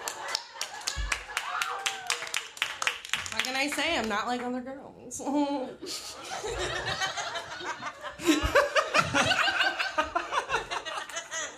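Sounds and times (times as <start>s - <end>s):
laughter: 0.0s - 2.1s, 5.8s - 11.5s
audience applause: 0.0s - 4.1s
speech: 3.6s - 9.4s.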